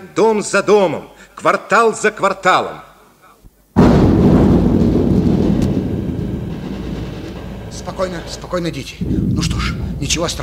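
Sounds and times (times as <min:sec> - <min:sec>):
speech: 0:00.0 - 0:02.9, 0:07.8 - 0:10.4
machine gun fire: 0:03.8 - 0:10.4.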